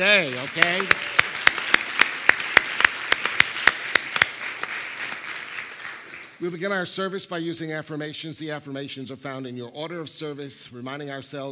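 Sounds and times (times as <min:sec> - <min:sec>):
speech: 0:00.0 - 0:01.1, 0:06.4 - 0:11.5
audience clapping in a steady rhythm: 0:00.0 - 0:06.6.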